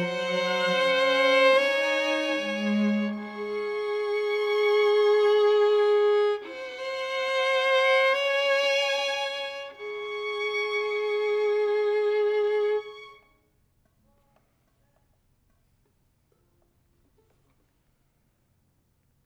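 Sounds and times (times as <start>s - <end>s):
violin: 0.0s - 13.5s.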